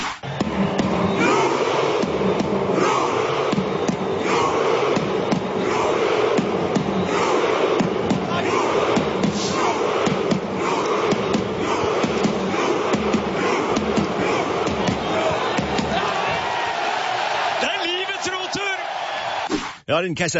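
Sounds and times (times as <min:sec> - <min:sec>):
steady rhythmic beats of fans rowing chant: 0:00.0 - 0:18.3
huge stadium crowd chanting in unison: 0:00.2 - 0:19.5
speech: 0:20.0 - 0:20.3.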